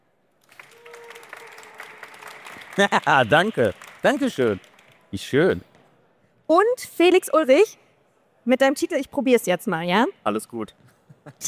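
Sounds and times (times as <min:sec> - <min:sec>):
event audience applause welcoming a guest: 0:00.4 - 0:05.0
speech: 0:02.8 - 0:05.7, 0:06.5 - 0:07.8, 0:08.4 - 0:11.4.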